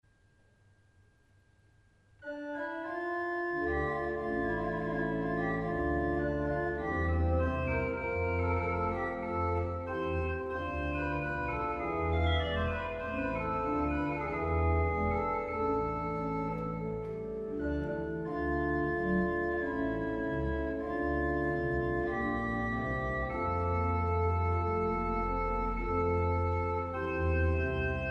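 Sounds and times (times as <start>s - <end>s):
organ sesquialtera stop: 2.2s - 28.1s.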